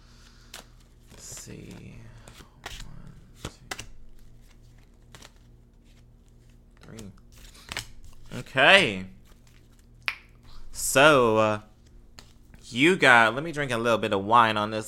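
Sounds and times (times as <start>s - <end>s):
shuffling tarot cards: 0.2s - 10.0s
speech: 1.5s - 2.1s, 8.5s - 9.2s, 10.9s - 11.7s, 12.7s - 14.8s.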